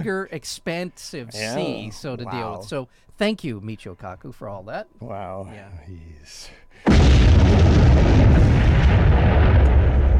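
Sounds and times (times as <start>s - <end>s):
speech: 0.0s - 8.4s
explosion rumbling: 6.9s - 10.1s.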